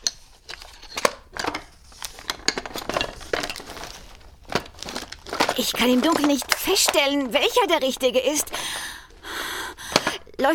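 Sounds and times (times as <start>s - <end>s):
metal utensils clattering in a drawer: 0.0s - 7.1s
speech: 5.6s - 8.9s, 10.4s - 10.5s.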